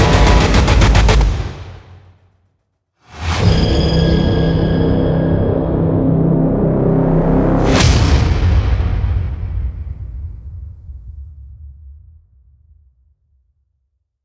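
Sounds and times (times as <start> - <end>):
intense action blockbuster cinematic trailer music: 0.0 - 2.3, 3.1 - 10.6.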